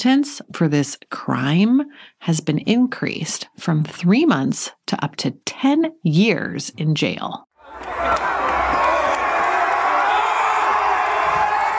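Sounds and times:
speech: 0.0 - 8.2
large protest crowd cheering and roaring: 7.6 - 11.7
whoops and shouts: 7.7 - 11.7.

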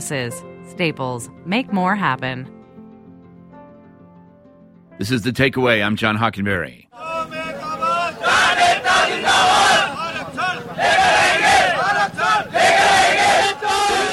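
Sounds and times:
speech: 0.0 - 2.6, 5.0 - 6.8
protest crowd chanting outside Delhi: 6.9 - 14.1.

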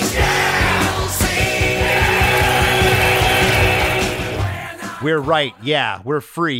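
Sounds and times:
crowd cheering sample in song: 0.1 - 4.8
speech: 5.1 - 6.5.

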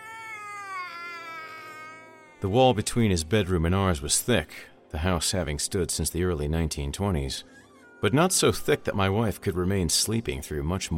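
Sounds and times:
baby crying loudly: 0.0 - 2.8, 7.5 - 8.3
speech: 2.4 - 10.9.

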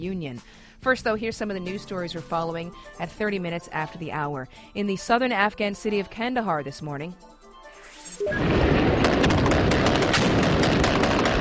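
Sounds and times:
speech: 0.0 - 7.3, 8.2 - 8.7
gunfire from gun battle between Taliban fighters and security forces in Kandahar: 8.6 - 11.3.

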